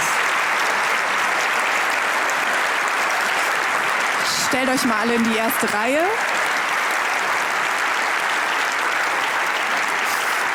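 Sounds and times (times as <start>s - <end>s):
applause from a large audience: 0.0s - 10.5s
speech: 4.5s - 6.3s.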